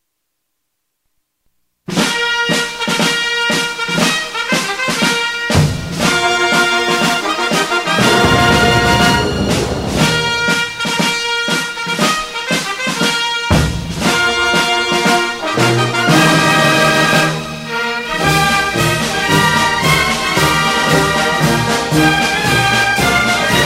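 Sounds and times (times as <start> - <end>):
instrumental national anthem: 1.9 - 23.6.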